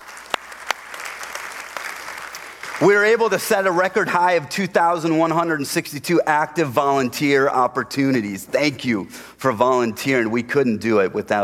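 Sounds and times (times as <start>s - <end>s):
church congregation clapping for givers and volunteers: 0.0s - 4.4s
speech: 2.8s - 11.4s.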